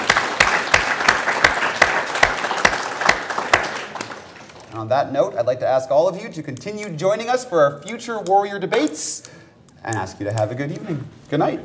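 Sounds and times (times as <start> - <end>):
audience applause: 0.0 - 4.7
speech: 4.8 - 11.6.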